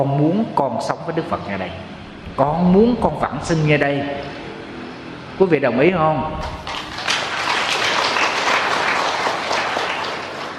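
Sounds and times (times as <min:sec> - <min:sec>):
speech: 0:00.0 - 0:04.4, 0:05.4 - 0:06.7
audience applauding at a Buddhist dharma talk: 0:06.5 - 0:10.5.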